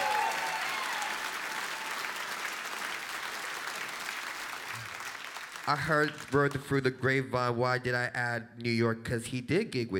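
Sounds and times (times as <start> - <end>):
whoop: 0.0 - 2.2
crowd clapping and cheering for drummer: 0.0 - 6.6
speech: 5.6 - 9.9.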